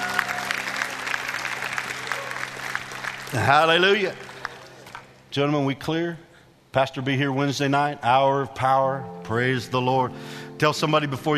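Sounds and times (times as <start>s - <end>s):
audience applause: 0.0s - 5.2s
speech: 3.3s - 4.3s, 5.3s - 11.3s.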